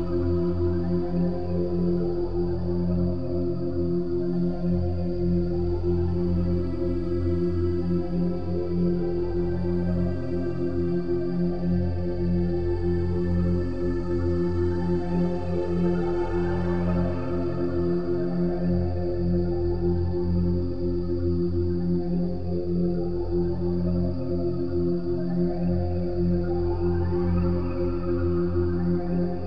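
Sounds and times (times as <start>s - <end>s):
deep ambient soundscape chord: 0.0s - 29.4s.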